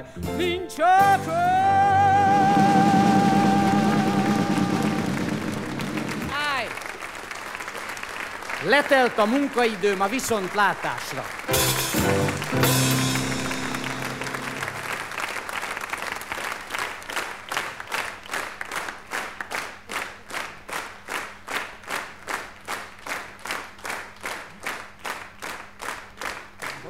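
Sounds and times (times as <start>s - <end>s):
speech: 0.1s - 1.6s, 8.7s - 11.5s
large audience applauding with rhythmic claps: 2.2s - 26.8s.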